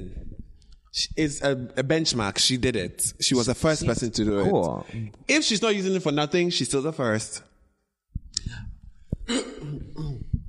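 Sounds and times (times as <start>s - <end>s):
speech: 1.0s - 7.5s
person with a dry throat coughing dryly: 9.2s - 10.4s.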